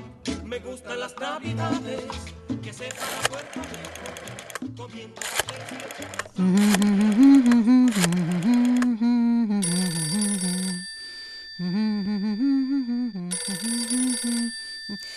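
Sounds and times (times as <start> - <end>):
telephone ringing during a Christmas call from Brooklyn to Puerto Rico: 2.9 - 4.6, 5.2 - 8.8, 9.6 - 15.1
person speaking: 5.2 - 11.0, 11.6 - 15.1.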